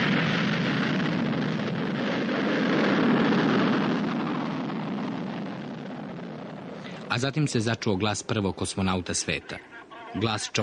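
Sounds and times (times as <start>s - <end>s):
Vostok 1 rocket launch roar: 0.0s - 8.0s
speech: 7.2s - 10.6s.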